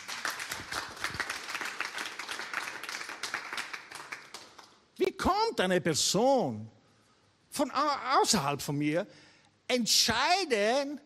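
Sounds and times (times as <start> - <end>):
applause: 0.0 - 5.0
speech: 5.2 - 6.8, 7.6 - 11.0.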